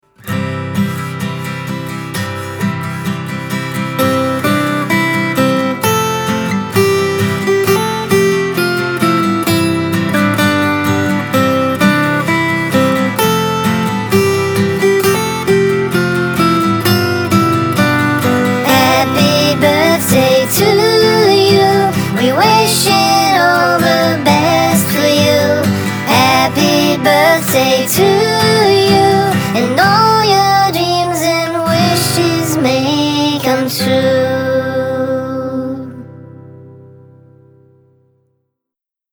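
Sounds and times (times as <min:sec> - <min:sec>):
birthday music: 0:00.2 - 0:36.8.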